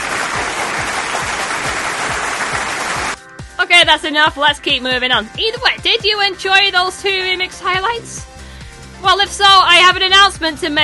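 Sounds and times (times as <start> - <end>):
applause: 0.0 - 3.2
speech: 3.8 - 8.3, 9.0 - 10.8.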